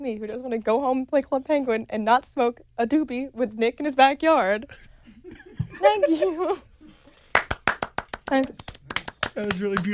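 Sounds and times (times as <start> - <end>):
speech: 0.0 - 6.7, 8.3 - 8.8, 9.4 - 9.9
laughter: 5.1 - 6.7
audience hand claps: 7.3 - 9.9.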